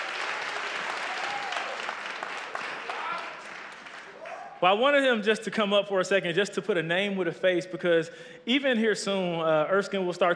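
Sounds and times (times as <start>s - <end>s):
audience applause: 0.0s - 4.6s
speech: 4.6s - 10.3s.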